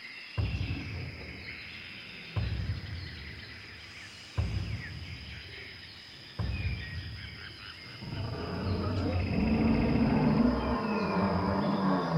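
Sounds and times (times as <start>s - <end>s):
heavy booming dinosaur-like footsteps: 0.4s - 12.1s
deep rumbling monster roar: 8.0s - 12.1s.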